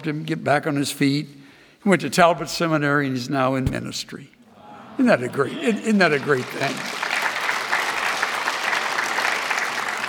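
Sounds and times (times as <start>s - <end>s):
speech: 0.0s - 4.4s, 5.0s - 7.0s
audience applause: 6.2s - 10.0s.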